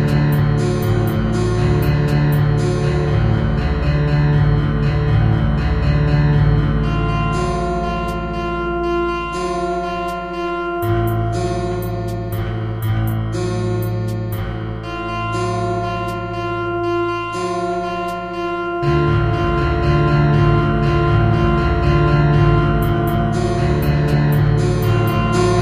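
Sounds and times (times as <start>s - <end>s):
horror music: 0.0s - 25.5s.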